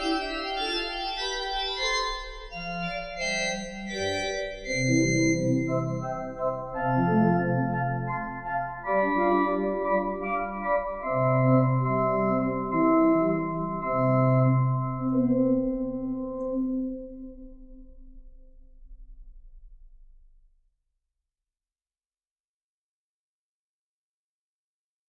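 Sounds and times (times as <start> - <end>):
pastorale in C major: 0.0 - 19.0.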